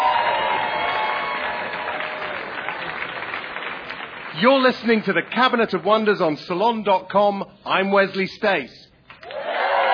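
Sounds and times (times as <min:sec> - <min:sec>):
audience applause: 0:00.0 - 0:05.3, 0:09.2 - 0:09.9
speech: 0:04.4 - 0:08.8.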